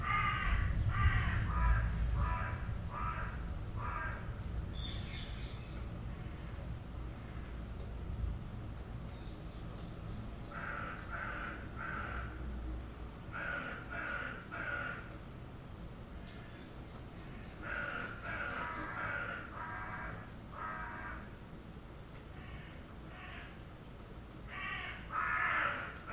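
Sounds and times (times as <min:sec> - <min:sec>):
thunderstorm: 0:00.0 - 0:06.8
noisy birds: 0:00.0 - 0:26.1.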